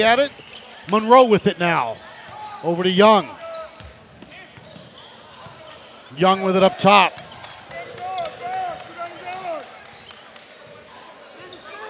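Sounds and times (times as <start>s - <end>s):
speech: 0.0s - 3.4s, 6.1s - 7.2s
faint crowd murmur: 0.0s - 11.8s
basketball dribbled on a court during a game: 3.7s - 6.0s, 7.0s - 9.2s.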